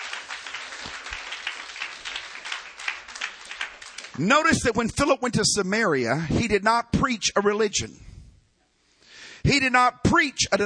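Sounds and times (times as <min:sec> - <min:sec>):
audience clapping hands: 0:00.0 - 0:04.9
speech: 0:04.2 - 0:08.1, 0:09.4 - 0:10.6.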